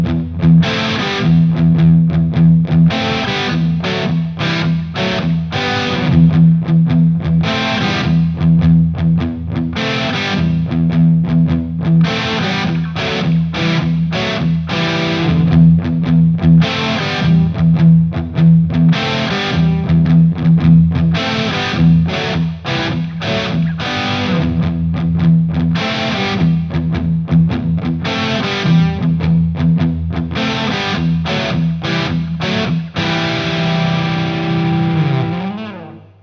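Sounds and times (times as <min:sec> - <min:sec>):
PRS Custom 22 guitar with Egnater M4 XTC: 0:00.0 - 0:36.2.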